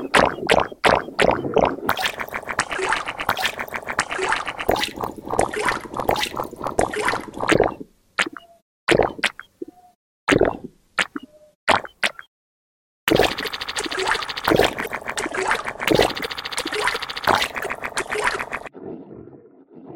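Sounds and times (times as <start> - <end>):
toilet sounds: 0.0 - 9.4, 13.1 - 18.7.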